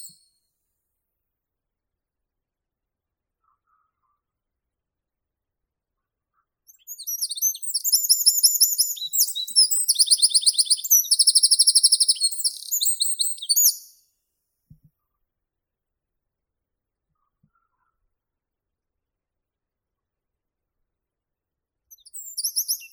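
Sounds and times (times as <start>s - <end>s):
wren Troglodytes troglodytes calling: 6.7s - 13.9s, 21.9s - 22.9s.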